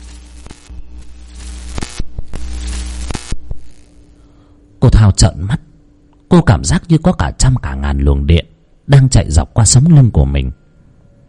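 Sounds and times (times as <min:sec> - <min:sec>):
sharp crackling bursts and irregular clicks of static: 0:00.0 - 0:04.2
flickering fluorescent tube with low electrical hum: 0:00.0 - 0:11.2
speech: 0:04.8 - 0:05.6, 0:06.3 - 0:10.6.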